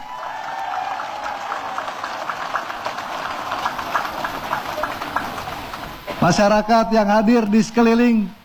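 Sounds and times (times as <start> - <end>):
crowd applauding: 0.0 - 6.3
speech: 6.2 - 8.4.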